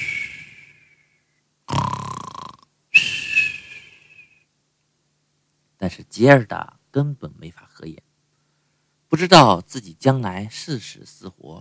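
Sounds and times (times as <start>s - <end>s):
loud snoring: 1.7s - 2.6s
speech: 5.8s - 8.1s, 9.1s - 11.5s.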